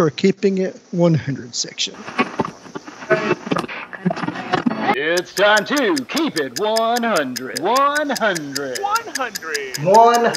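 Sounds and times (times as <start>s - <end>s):
speech: 0.0s - 2.3s, 4.0s - 10.3s
laughter: 2.1s - 10.3s
timer ticking: 5.0s - 10.3s.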